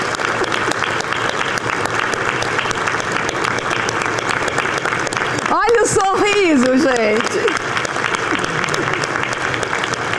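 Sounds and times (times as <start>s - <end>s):
audience applause: 0.0s - 10.1s
laughter: 5.6s - 9.8s.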